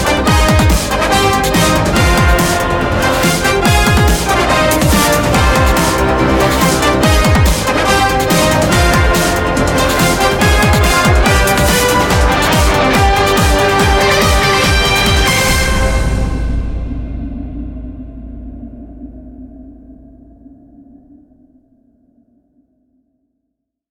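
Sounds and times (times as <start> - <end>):
sports TV theme music: 0.0 - 17.0.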